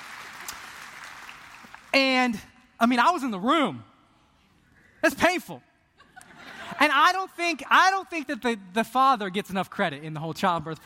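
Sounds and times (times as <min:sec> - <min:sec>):
audience clapping: 0:00.0 - 0:02.0
speech: 0:02.0 - 0:03.9, 0:05.0 - 0:05.7, 0:06.8 - 0:10.8
laughter: 0:06.0 - 0:07.0.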